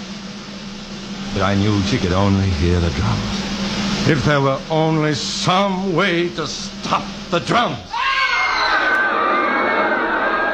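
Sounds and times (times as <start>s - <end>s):
speech: 1.4s - 8.0s
terrified circus crowd roaring and screaming: 7.9s - 10.5s.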